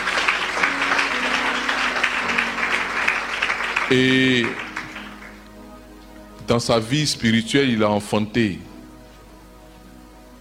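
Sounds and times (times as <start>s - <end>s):
church congregation applauding: 0.0s - 5.8s
speech: 3.9s - 4.6s, 6.5s - 8.7s.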